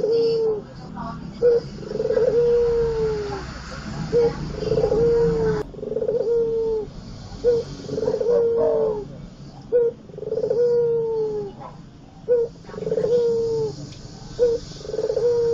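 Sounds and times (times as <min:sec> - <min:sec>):
Barbary dove cooing: 0:00.0 - 0:00.7, 0:01.3 - 0:15.5.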